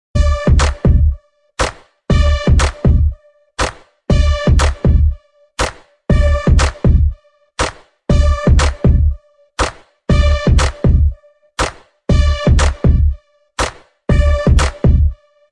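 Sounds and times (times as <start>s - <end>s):
bass: 0.2s - 1.2s, 2.1s - 3.2s, 4.1s - 5.2s, 6.1s - 7.2s, 8.1s - 9.2s, 10.1s - 11.2s, 12.1s - 13.2s, 14.1s - 15.2s.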